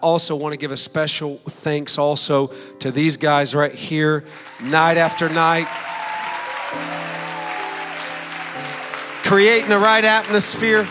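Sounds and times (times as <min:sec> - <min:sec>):
speech: 0:00.0 - 0:06.0, 0:06.7 - 0:07.2, 0:09.3 - 0:10.9
audience applause: 0:04.3 - 0:10.9.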